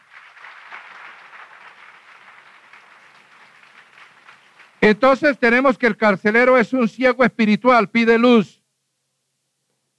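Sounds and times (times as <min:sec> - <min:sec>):
audience applause: 0:00.0 - 0:05.0
speech: 0:04.9 - 0:08.6.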